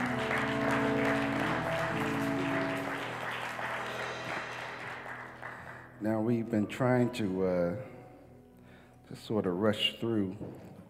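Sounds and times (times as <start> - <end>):
church congregation clapping: 0.0 - 6.2
sustained low instrumental tones: 0.0 - 10.8
speech: 6.0 - 7.9, 9.1 - 10.8.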